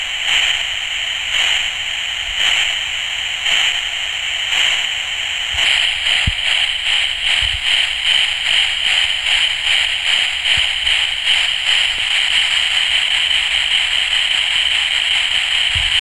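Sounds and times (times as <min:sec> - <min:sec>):
steam hissing: 0:00.0 - 0:16.0.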